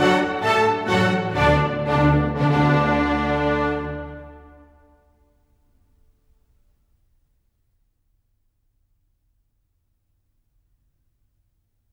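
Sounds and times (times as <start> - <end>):
allegro classical piece: 0.0 - 5.2.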